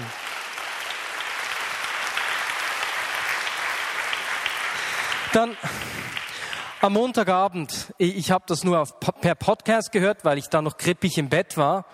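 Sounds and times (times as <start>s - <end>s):
audience clapping: 0.0s - 7.6s
speech: 5.3s - 6.0s, 6.8s - 11.9s.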